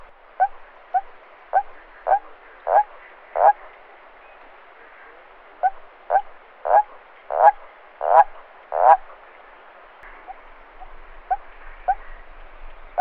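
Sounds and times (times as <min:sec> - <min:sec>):
common toad Bufo bufo croaking: 0:00.3 - 0:03.7, 0:05.5 - 0:09.1.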